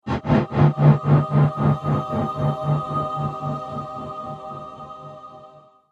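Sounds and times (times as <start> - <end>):
angelic drum impact: 0.0 - 4.2.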